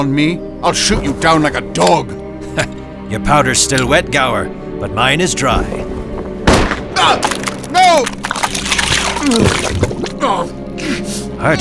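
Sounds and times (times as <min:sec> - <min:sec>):
speech: 0:00.0 - 0:06.0, 0:07.0 - 0:08.4, 0:09.2 - 0:11.5
person splashing and sinking into swamp mud: 0:07.2 - 0:10.6.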